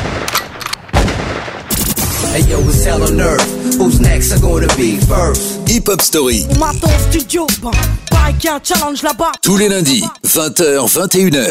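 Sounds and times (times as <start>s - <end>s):
gunshots in a hip-hop track: 0.0s - 2.2s
speech: 2.4s - 11.4s.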